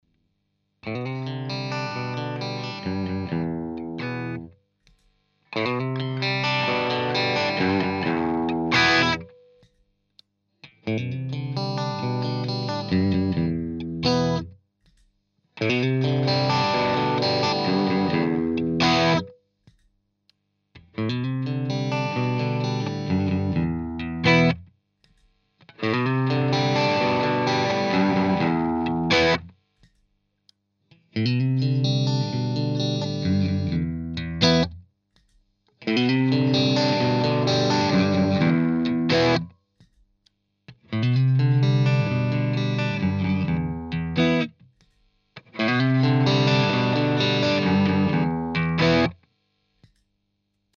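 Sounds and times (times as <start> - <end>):
Screamer overdriven guitar arpeggios: 0.8 - 4.5, 5.5 - 9.6, 10.6 - 14.5, 15.6 - 19.4, 20.8 - 24.6, 25.6 - 29.5, 30.9 - 34.8, 35.8 - 39.5, 40.7 - 44.6, 45.4 - 49.2.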